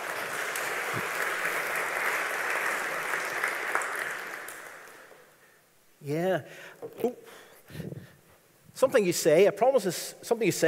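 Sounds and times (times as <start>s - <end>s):
audience applause: 0.0s - 5.3s
speech: 0.9s - 1.2s, 6.0s - 8.1s, 8.8s - 10.6s.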